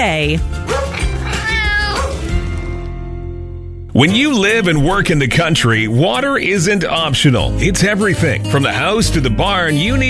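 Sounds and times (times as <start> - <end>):
speech: 0.0 - 0.6, 4.0 - 10.0
cat meowing: 0.9 - 2.3.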